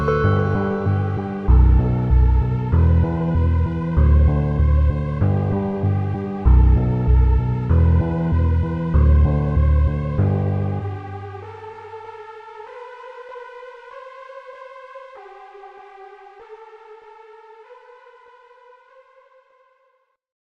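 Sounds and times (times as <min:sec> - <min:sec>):
slowed reverb bass boosted instrumental: 0:00.0 - 0:12.0.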